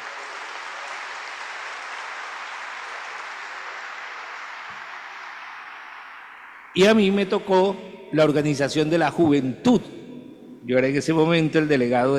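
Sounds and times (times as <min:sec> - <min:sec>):
audience applause: 0:00.0 - 0:06.9
speech: 0:06.8 - 0:10.0, 0:10.6 - 0:12.1.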